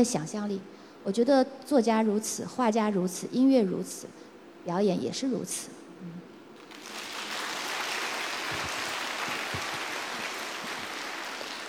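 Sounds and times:
speech: 0:00.0 - 0:06.2
audience applause: 0:06.6 - 0:11.6.

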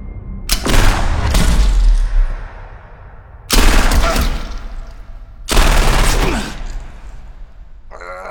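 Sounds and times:
gunfire: 0:00.5 - 0:02.8, 0:03.5 - 0:07.2.

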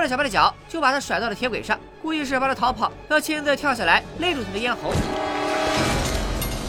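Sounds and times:
speech: 0:00.0 - 0:05.9
subway train approaching: 0:04.7 - 0:06.6.

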